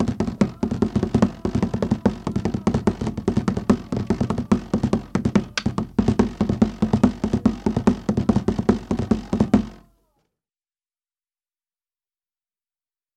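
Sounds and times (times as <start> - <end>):
tamburo drum playing: 0.0 - 9.8.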